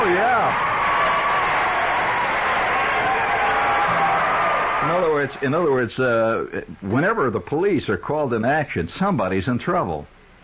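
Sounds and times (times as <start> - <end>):
audience cheering: 0.0 - 6.2
speech: 5.4 - 10.2.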